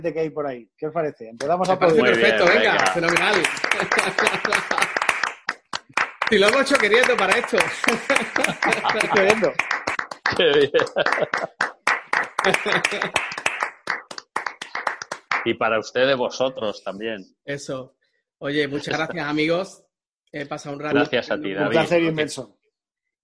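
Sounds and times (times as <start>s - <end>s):
speech: 0.0s - 5.0s, 6.3s - 11.8s, 12.4s - 13.4s, 15.4s - 22.6s
applause: 1.7s - 15.6s
laughter: 1.8s - 5.2s, 6.4s - 9.7s, 10.3s - 13.4s, 18.7s - 19.4s.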